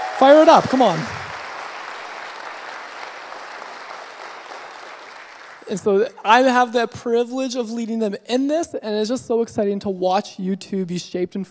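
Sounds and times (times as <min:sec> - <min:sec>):
round of applause: 0:00.0 - 0:05.7
speech: 0:00.2 - 0:01.2, 0:05.7 - 0:11.4.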